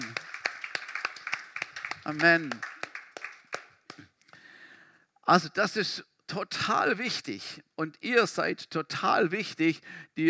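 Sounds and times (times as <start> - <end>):
audience applause: 0.0 - 3.8
speech: 2.1 - 2.7, 5.3 - 10.2.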